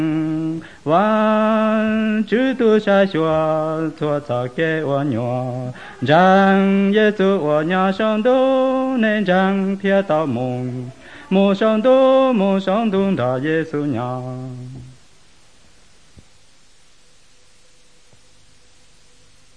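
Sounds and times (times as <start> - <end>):
White Hmong songs: 0.0 - 15.1.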